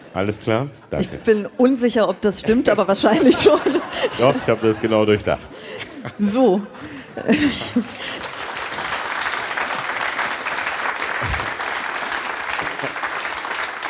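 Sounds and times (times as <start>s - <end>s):
speech: 0.1s - 8.3s
laughter: 3.0s - 8.8s, 11.2s - 13.6s
audience applause: 7.3s - 13.8s.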